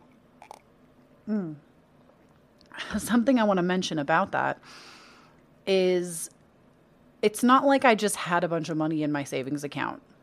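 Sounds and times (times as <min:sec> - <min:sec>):
person sipping tea: 0:00.0 - 0:00.7
speech: 0:01.3 - 0:01.7, 0:03.0 - 0:05.0, 0:05.6 - 0:06.4, 0:07.2 - 0:10.1.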